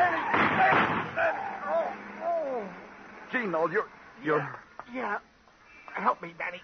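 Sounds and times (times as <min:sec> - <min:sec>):
gunshot sound effect in a radio crime drama: 0:00.3 - 0:01.3
speech: 0:03.3 - 0:05.3, 0:06.0 - 0:06.6.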